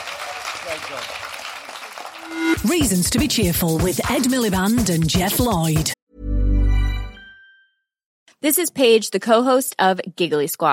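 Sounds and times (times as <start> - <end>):
audience applause: 0.0 - 2.6
speech: 0.6 - 1.3, 2.2 - 6.0, 8.4 - 10.7.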